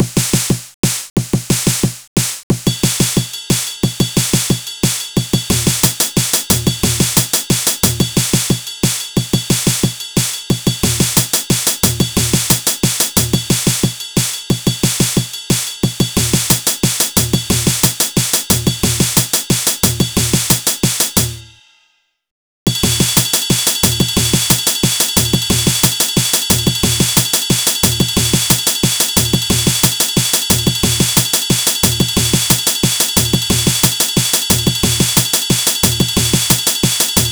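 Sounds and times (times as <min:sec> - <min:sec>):
drum: 0:00.0 - 0:21.6, 0:22.7 - 0:37.2.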